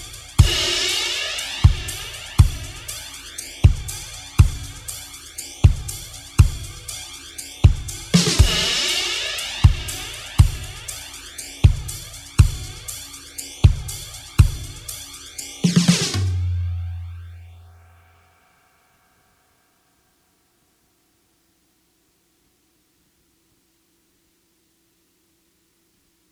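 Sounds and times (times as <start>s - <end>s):
drums: 0.0s - 17.2s.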